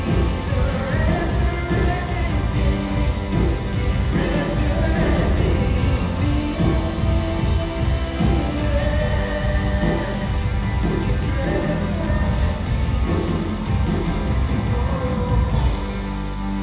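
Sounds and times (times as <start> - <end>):
rhythm: 0.0 - 16.5.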